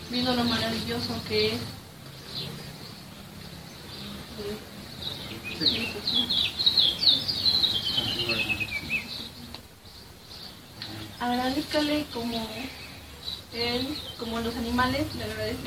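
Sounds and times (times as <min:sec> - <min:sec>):
birds singing in the morning: 0:00.0 - 0:15.6
speech: 0:00.1 - 0:01.8, 0:04.4 - 0:04.7, 0:05.6 - 0:06.6, 0:08.3 - 0:08.6, 0:11.2 - 0:12.8, 0:13.5 - 0:15.6.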